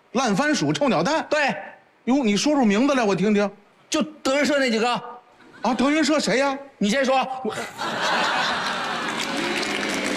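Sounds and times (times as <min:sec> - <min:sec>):
speech: 0:00.1 - 0:08.6
laughter: 0:07.5 - 0:10.1
applause: 0:08.4 - 0:10.1.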